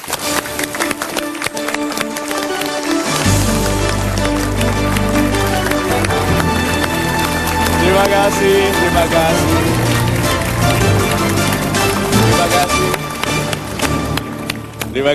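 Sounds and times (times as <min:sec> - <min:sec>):
audience applause: 0:00.0 - 0:15.1
loud bass-heavy music: 0:03.2 - 0:15.1
speech: 0:08.3 - 0:09.9, 0:15.0 - 0:15.1.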